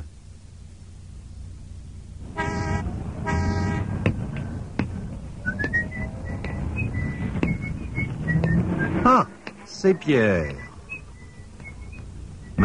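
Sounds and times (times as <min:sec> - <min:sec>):
low rumble of traffic: 0:00.0 - 0:12.6
car horn honks: 0:02.3 - 0:04.0
faint high chirping whistle-like tones: 0:05.4 - 0:09.3, 0:09.9 - 0:12.6
speech: 0:09.1 - 0:10.6.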